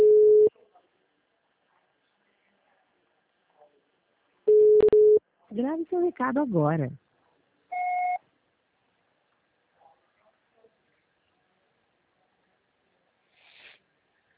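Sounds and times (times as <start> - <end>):
electronic telephone tone: 0.0 - 0.5, 4.5 - 5.2, 7.7 - 8.2
speech: 6.0 - 7.0
breathy hiss: 13.2 - 13.9.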